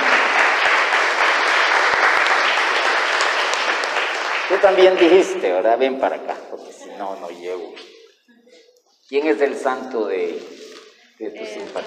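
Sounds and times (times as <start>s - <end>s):
audience applause: 0.0s - 5.6s
speech: 4.6s - 7.9s, 9.1s - 10.6s, 11.2s - 11.8s.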